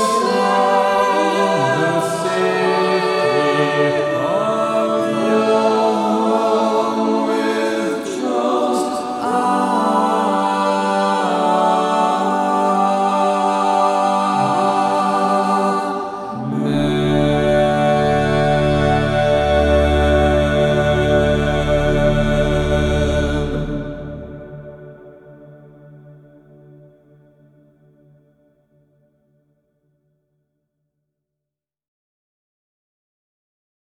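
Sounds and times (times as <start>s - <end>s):
drones: 0.0s - 25.8s.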